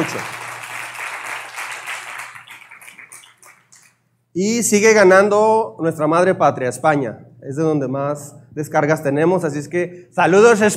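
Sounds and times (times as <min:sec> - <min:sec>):
speech: 0:00.0 - 0:00.4, 0:04.4 - 0:10.7
applause: 0:00.0 - 0:04.0.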